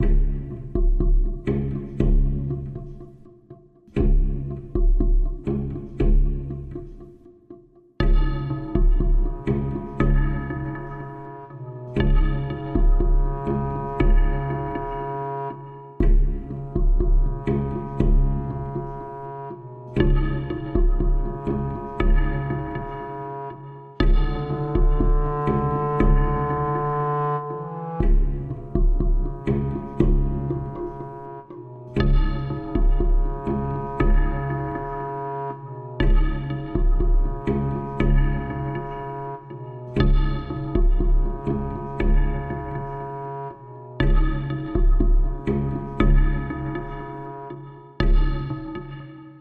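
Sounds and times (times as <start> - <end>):
heartbeat: 0.0 - 2.5, 4.0 - 6.5, 8.0 - 10.4, 12.0 - 14.6, 16.0 - 18.8, 20.0 - 22.9, 24.0 - 26.9, 28.0 - 30.9, 32.0 - 34.6, 36.0 - 38.7, 40.0 - 42.7, 44.0 - 46.9, 48.0 - 48.8.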